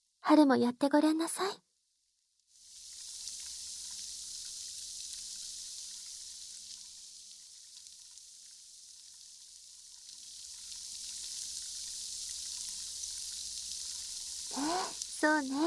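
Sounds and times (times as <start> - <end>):
speech: 0.3 - 1.6, 15.4 - 15.6
small bubbles popping in cider: 14.4 - 15.6.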